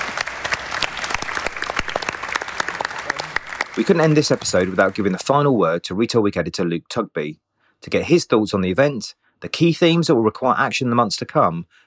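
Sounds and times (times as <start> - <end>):
audience applause: 0.0 - 5.3
speech: 3.8 - 11.8.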